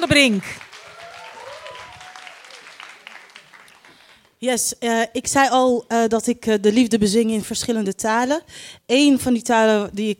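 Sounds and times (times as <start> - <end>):
speech: 0.0 - 0.6, 4.4 - 10.1
audience applause: 0.3 - 4.3.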